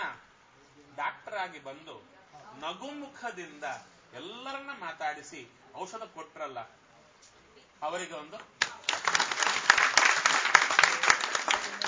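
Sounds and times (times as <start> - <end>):
speech: 1.4 - 6.8, 7.8 - 8.6
audience clapping in thanks to a doctor: 8.6 - 11.8.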